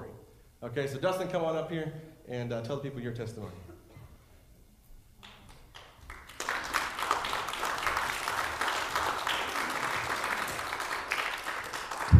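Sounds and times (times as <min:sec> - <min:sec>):
speech: 0:00.6 - 0:03.7
audience applause as speaker walks up: 0:05.7 - 0:12.1.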